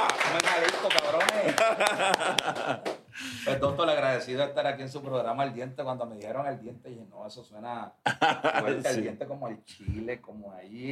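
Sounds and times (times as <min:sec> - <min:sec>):
audience applause: 0:00.0 - 0:03.0
laughter: 0:00.0 - 0:03.6, 0:08.1 - 0:09.0
speech: 0:00.8 - 0:10.9.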